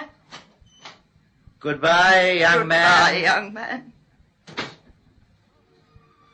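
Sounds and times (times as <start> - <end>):
speech: 1.6 - 4.0
door closing: 4.5 - 4.9.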